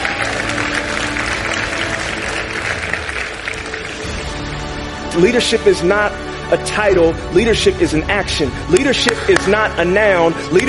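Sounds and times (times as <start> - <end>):
audience applause: 0.0 - 4.6
speech: 5.2 - 10.6.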